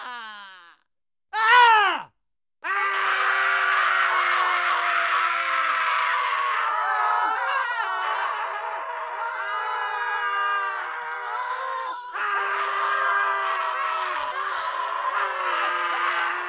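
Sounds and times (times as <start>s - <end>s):
man screaming: 1.3s - 16.4s.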